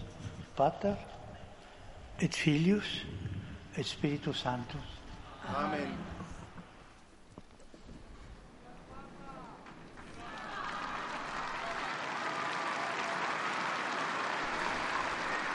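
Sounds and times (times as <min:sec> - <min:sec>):
speech: 0:00.6 - 0:01.1, 0:02.2 - 0:03.2, 0:03.8 - 0:06.2
large crowd of faithful and pilgrims applauding: 0:09.6 - 0:15.5
voices and cheers: 0:10.0 - 0:15.5.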